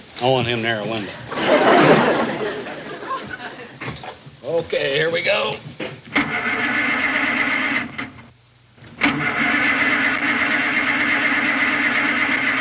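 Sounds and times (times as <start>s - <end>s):
speech: 0.2s - 2.4s, 4.5s - 5.7s
laughter: 1.0s - 4.0s
flooded car engine cranking and failing to start: 6.1s - 8.3s, 8.9s - 12.5s.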